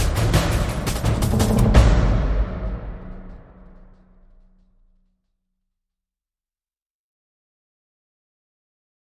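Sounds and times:
cinematic drums: 0.0 - 5.0.

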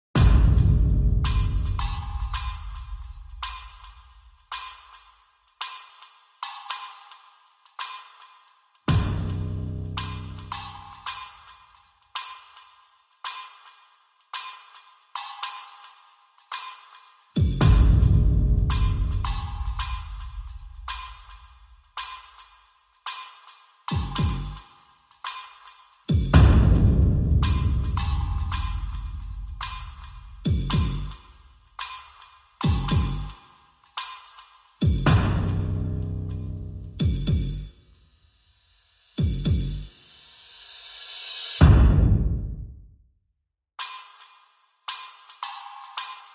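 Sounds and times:
drums: 0.1 - 37.8, 38.4 - 42.7, 43.8 - 46.3.

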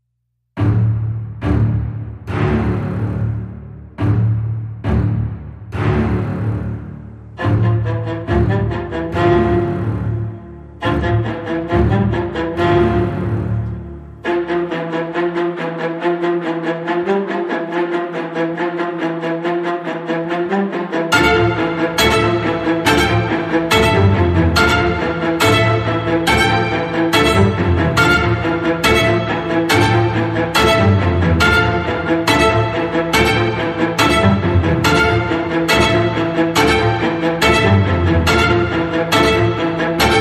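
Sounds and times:
strings: 0.6 - 40.1.

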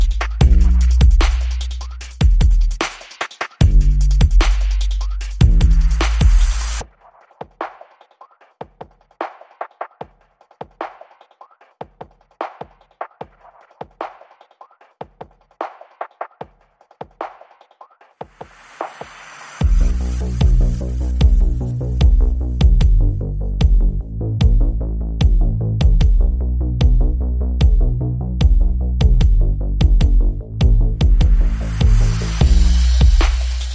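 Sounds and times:
bass: 0.0 - 3.0, 3.6 - 6.8, 19.6 - 33.7
drums: 0.0 - 33.7.

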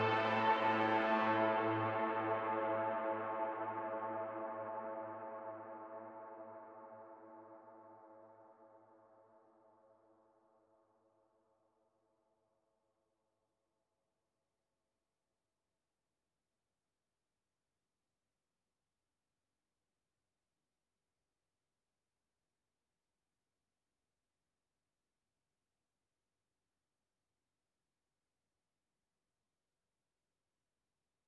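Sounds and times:
lead melody: 0.0 - 4.6.

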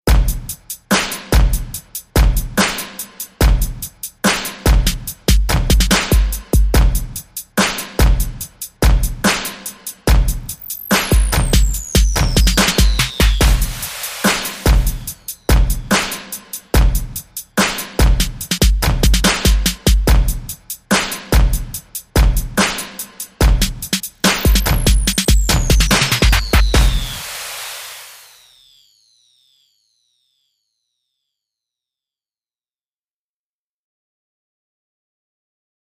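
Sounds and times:
beat: 0.1 - 28.6.

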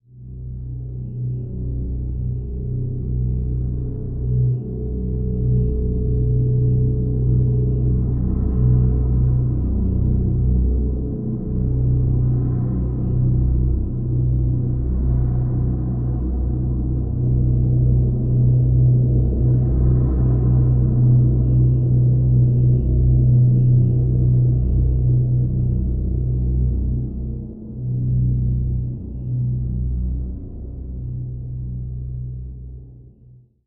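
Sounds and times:
drone in B: 0.1 - 33.2.

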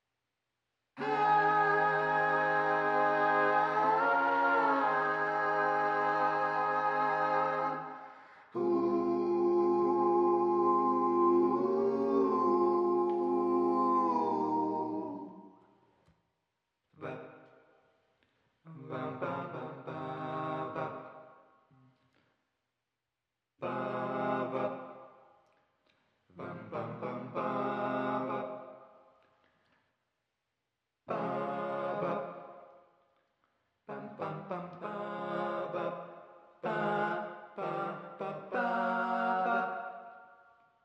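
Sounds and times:
choirs singing: 1.0 - 15.6, 18.7 - 21.3, 23.6 - 25.1, 26.4 - 28.8, 31.1 - 32.7, 33.9 - 40.3.

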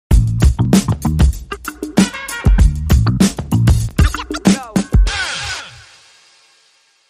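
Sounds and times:
bass stem: 0.1 - 5.2.

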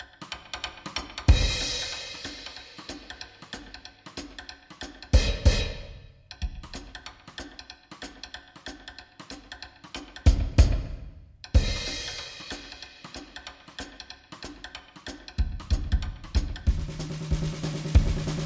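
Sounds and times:
drums: 0.0 - 18.4.

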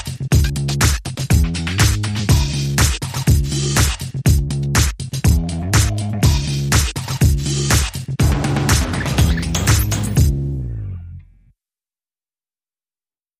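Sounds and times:
drums: 0.0 - 10.4
bass: 0.0 - 11.5.

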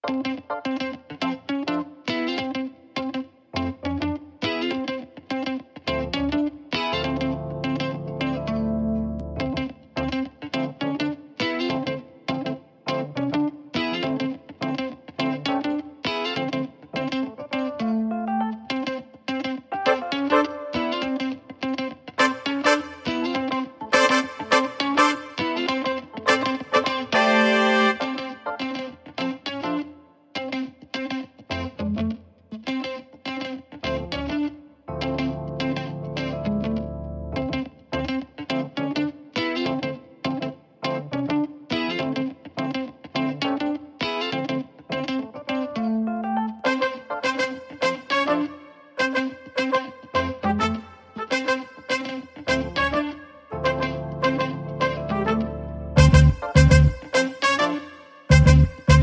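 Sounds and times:
guitar: 0.0 - 59.0
keyboard: 5.9 - 10.3, 15.2 - 30.0, 33.8 - 38.7, 43.4 - 59.0
brass instruments: 19.8 - 21.0, 22.2 - 28.6, 46.6 - 59.0.

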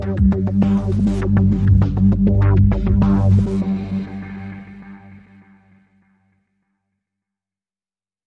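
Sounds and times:
drums: 0.0 - 5.1.

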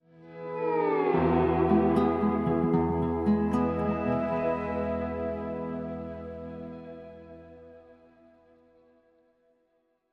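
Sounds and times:
acoustic music sting: 0.6 - 7.7.

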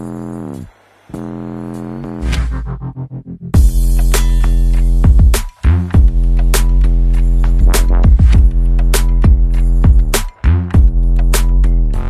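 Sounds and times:
bass: 0.0 - 12.0
drums with effects: 3.6 - 12.0.

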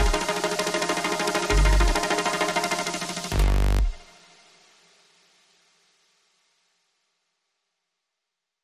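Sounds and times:
underscore music: 0.0 - 4.6.

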